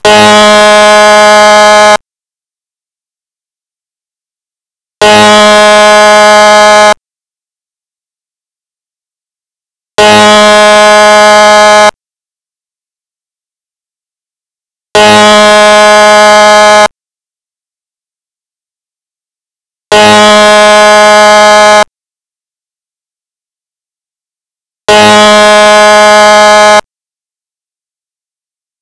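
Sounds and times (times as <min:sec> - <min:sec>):
dam break alert: 0:00.1 - 0:02.0, 0:05.0 - 0:07.0, 0:10.0 - 0:12.0, 0:15.0 - 0:16.9, 0:19.9 - 0:21.9, 0:24.9 - 0:26.8.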